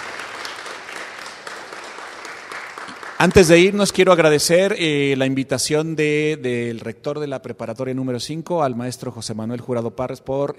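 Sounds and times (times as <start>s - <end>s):
audience in a library applauding a guest speaker: 0.0s - 3.8s
speech: 2.9s - 10.5s.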